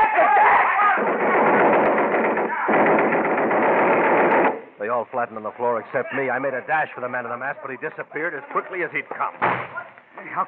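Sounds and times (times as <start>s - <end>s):
Thompson submachine gun firing blanks: 0.9s - 4.7s
speech: 5.2s - 10.4s.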